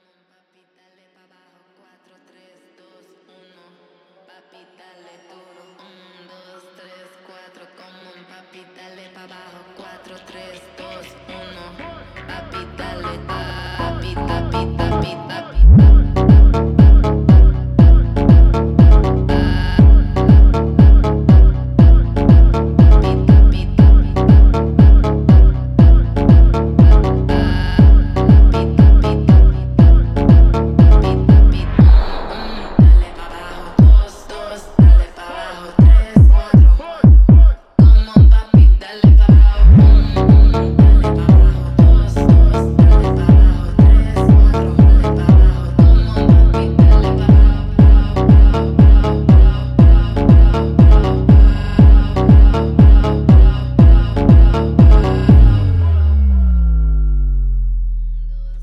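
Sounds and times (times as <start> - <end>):
phonk music: 10.3 - 57.2.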